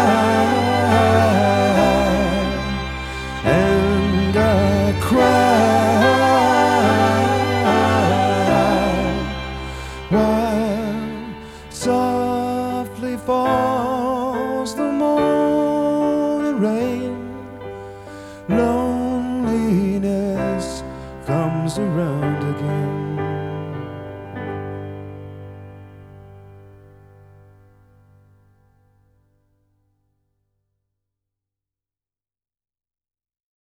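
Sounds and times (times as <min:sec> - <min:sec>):
string music: 0:00.0 - 0:26.9.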